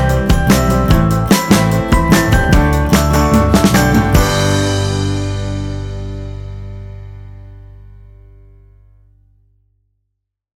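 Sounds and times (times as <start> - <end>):
happy fun dance music: 0.0 - 5.3.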